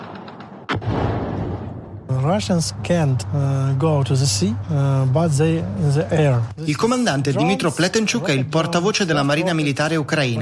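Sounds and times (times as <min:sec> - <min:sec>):
anti-aircraft fire blast: 0:00.0 - 0:02.8
speech: 0:02.2 - 0:10.3.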